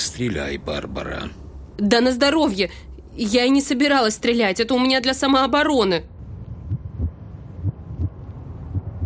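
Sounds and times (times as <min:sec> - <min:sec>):
dull steady hum: 0:00.0 - 0:09.0
speech: 0:00.2 - 0:06.2
magpie's weak heartbeat: 0:06.2 - 0:09.0.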